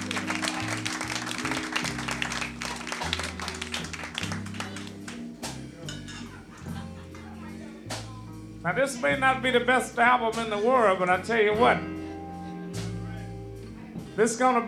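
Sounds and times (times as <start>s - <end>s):
audience applause: 0.0s - 5.4s
laughter: 0.0s - 7.9s
speech: 8.6s - 12.0s, 14.2s - 14.6s.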